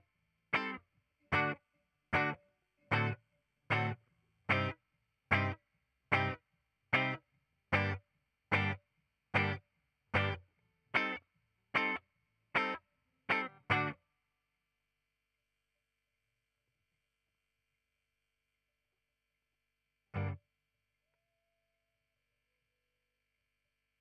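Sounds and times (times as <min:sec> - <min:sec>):
ragtime guitar: 0:00.5 - 0:08.8, 0:09.4 - 0:09.6, 0:10.2 - 0:10.4, 0:11.0 - 0:11.2, 0:11.8 - 0:12.0, 0:12.6 - 0:14.0, 0:20.2 - 0:20.4.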